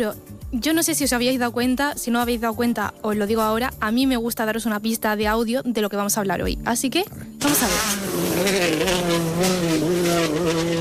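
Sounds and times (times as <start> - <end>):
speech: 0.0 - 10.7
rally car engine: 7.4 - 10.7.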